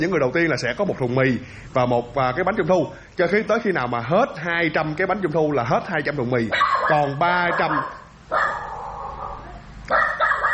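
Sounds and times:
speech: 0:00.0 - 0:08.5
dog barking: 0:06.5 - 0:10.5.

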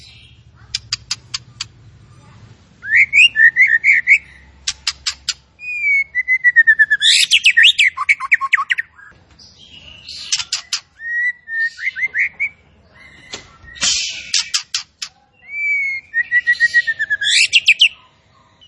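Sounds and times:
zebra finch song: 0:00.0 - 0:18.6.

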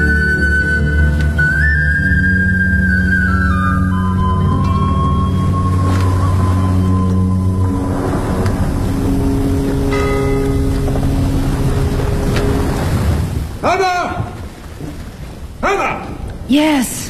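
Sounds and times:
engine rumble: 0:00.0 - 0:13.6
steady wash of water: 0:00.0 - 0:17.0
ship's bell striking the hour in fog: 0:03.8 - 0:13.2
person speaking: 0:15.6 - 0:17.0.

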